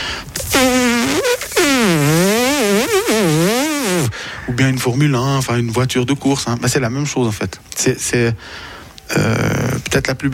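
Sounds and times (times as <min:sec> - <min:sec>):
voice imitating a buzzing mosquito: 0:00.5 - 0:04.1
speech: 0:04.6 - 0:10.3.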